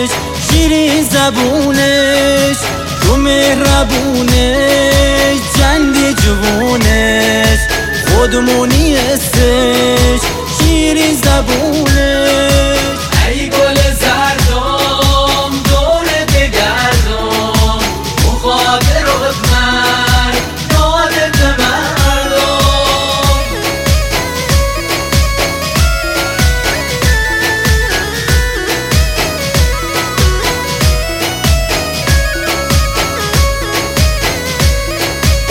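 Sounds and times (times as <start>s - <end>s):
remixed music: 0.0s - 35.4s.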